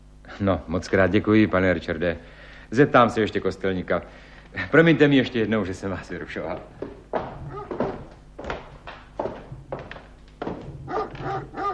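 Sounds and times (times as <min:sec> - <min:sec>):
speech: 0:00.4 - 0:07.0
dog barking with loud gruff woofs: 0:07.5 - 0:07.8, 0:10.8 - 0:11.7.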